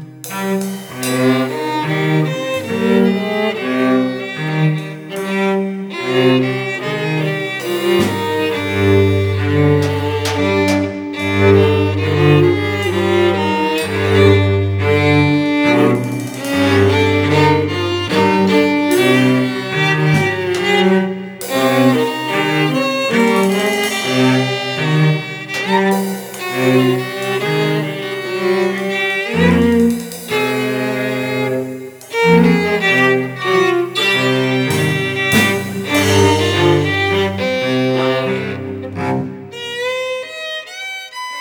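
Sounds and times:
drunken waltz music: 0.5 - 40.2.

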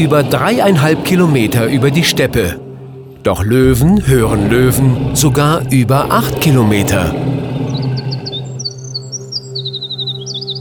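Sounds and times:
speech: 0.0 - 2.6, 3.2 - 7.4
male wren singing rapid song: 3.4 - 10.5.

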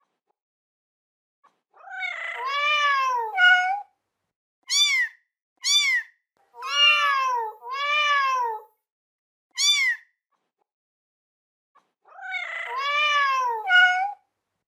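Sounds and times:
kitten meowing: 1.8 - 3.8, 4.7 - 8.7, 9.6 - 10.0, 12.1 - 14.2.

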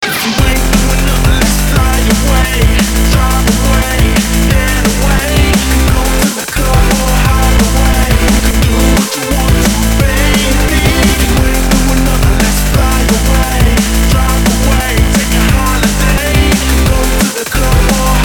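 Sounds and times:
remix ringtone: 0.4 - 18.2.

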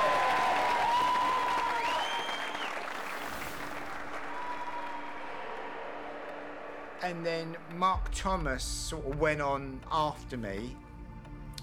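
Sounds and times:
audience applause: 0.0 - 8.3
speech: 7.0 - 10.8.

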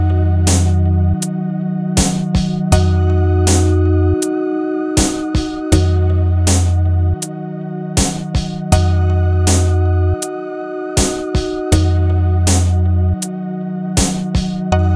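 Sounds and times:
instrumental rap hip hop beat: 0.0 - 1.4, 2.0 - 4.4, 5.0 - 7.4, 8.0 - 10.4, 11.0 - 13.4, 14.0 - 14.8.

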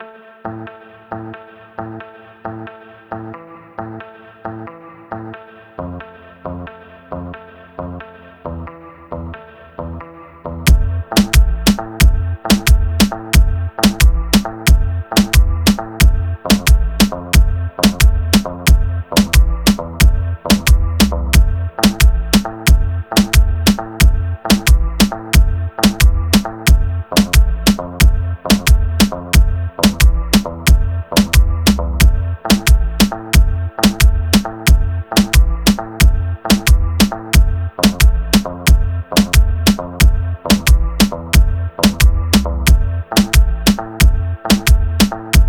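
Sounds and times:
instrumental hip hop beat: 10.7 - 45.4.

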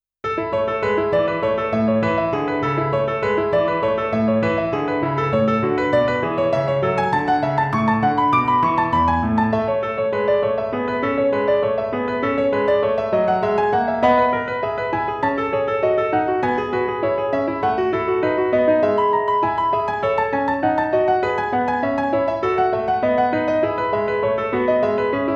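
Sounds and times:
piano sonata toccata in A major: 0.2 - 25.3.

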